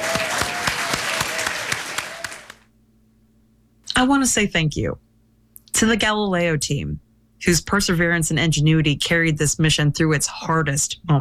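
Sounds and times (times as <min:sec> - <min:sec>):
applause: 0:00.0 - 0:02.7
speech: 0:04.0 - 0:05.1, 0:05.8 - 0:11.2.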